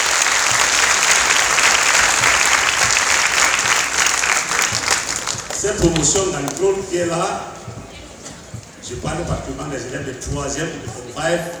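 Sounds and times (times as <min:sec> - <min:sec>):
audience applause: 0:00.0 - 0:06.9
speech: 0:05.7 - 0:07.8, 0:08.9 - 0:11.5.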